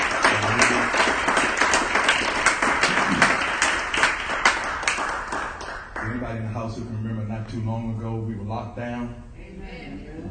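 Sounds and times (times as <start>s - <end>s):
audience hand clapping: 0.0s - 6.2s
speech: 7.6s - 9.7s.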